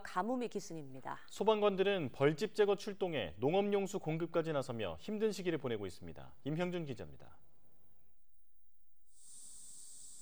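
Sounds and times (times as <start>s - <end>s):
speech: 0.1s - 7.5s
aerosol insecticide spray hissing: 9.1s - 10.2s.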